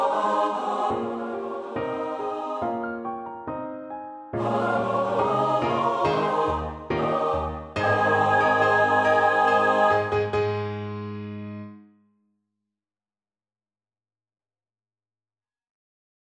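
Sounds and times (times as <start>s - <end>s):
four-part choir singing a carol: 0.0s - 3.2s, 4.4s - 10.8s
organ playing a carol: 4.4s - 11.6s.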